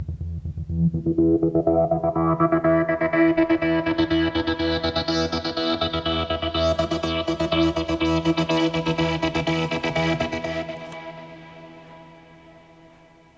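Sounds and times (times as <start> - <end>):
DCAM Synth Squad Fusor factory synthesizer sound: 0.6 - 13.3.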